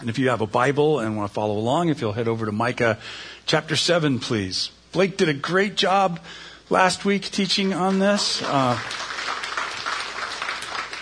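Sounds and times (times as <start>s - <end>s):
speech: 0.0s - 9.1s
audience applause: 7.6s - 10.9s.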